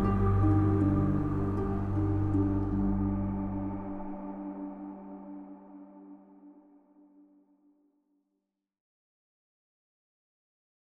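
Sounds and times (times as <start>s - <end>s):
instrumental music: 0.0s - 6.7s.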